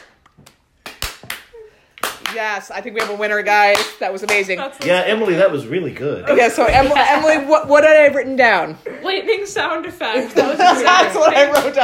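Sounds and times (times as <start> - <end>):
slow hand claps: 0.0 - 2.4
speech: 2.3 - 11.8
laughter: 10.2 - 11.8.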